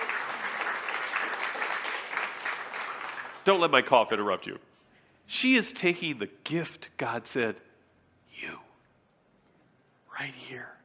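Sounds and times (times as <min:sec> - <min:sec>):
crowd applauding: 0:00.0 - 0:03.9
speech: 0:03.4 - 0:04.7, 0:05.3 - 0:07.7, 0:08.4 - 0:08.6, 0:10.2 - 0:10.8.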